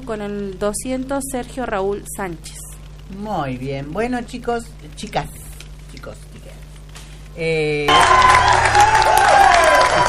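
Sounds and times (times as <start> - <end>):
speech: 0.0 - 6.6, 7.4 - 9.1
audience applause: 7.9 - 10.0.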